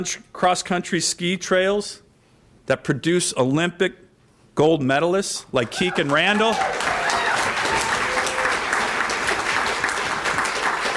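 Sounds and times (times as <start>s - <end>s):
speech: 0.0s - 2.0s, 2.7s - 4.0s, 4.6s - 6.9s
audience applause: 5.6s - 10.9s.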